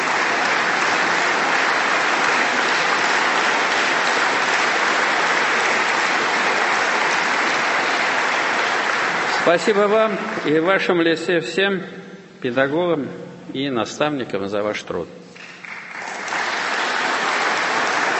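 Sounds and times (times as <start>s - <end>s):
audience applause at a ceremony honoring educators: 0.0s - 10.8s, 15.4s - 18.1s
speech: 9.5s - 15.2s.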